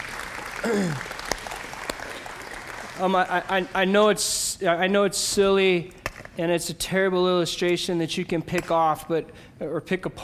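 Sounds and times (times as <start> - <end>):
church audience applause: 0.0 - 3.9
speech: 0.6 - 1.1, 3.0 - 10.2.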